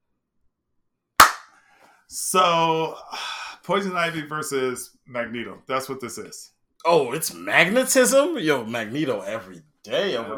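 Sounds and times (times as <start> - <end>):
single hand clap: 1.2 - 1.6
speech: 2.1 - 10.3.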